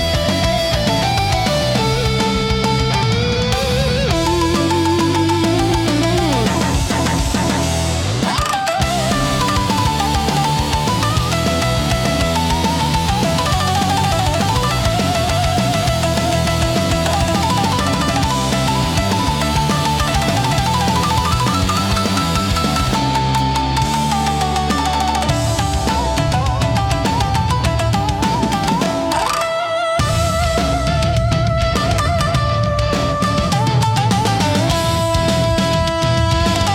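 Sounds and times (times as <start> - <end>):
intense Japanese rock music on shamisen: 0.0 - 36.7.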